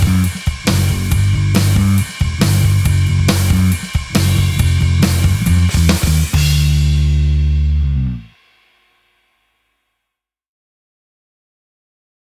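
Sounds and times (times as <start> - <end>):
electric rhythm guitar playing a backing track: 0.0 - 8.3.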